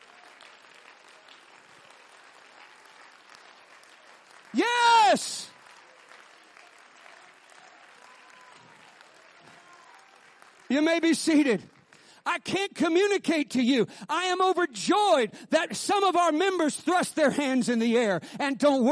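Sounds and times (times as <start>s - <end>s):
audience clapping hands: 0.0s - 13.9s
speech: 4.5s - 5.5s, 10.7s - 18.9s.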